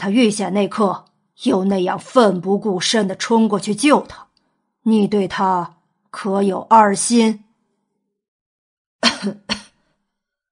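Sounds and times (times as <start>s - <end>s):
speech: 0.0s - 7.4s, 9.2s - 9.5s
light coughs: 9.0s - 9.8s.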